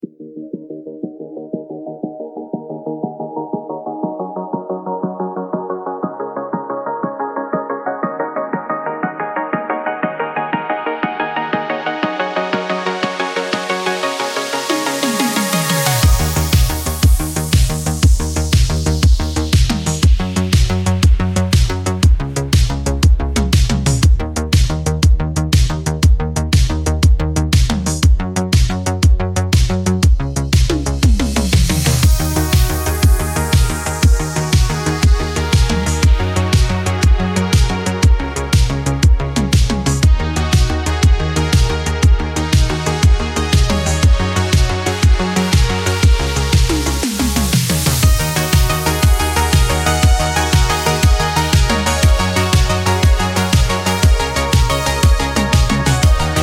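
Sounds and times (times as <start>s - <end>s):
synthwave drive music: 0.0s - 56.4s.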